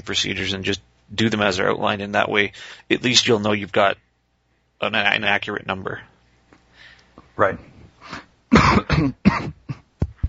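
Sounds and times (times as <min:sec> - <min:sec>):
speech: 0:00.0 - 0:04.0, 0:04.8 - 0:06.1, 0:07.4 - 0:09.6
person coughing after a drink went down the wrong way: 0:08.5 - 0:09.9.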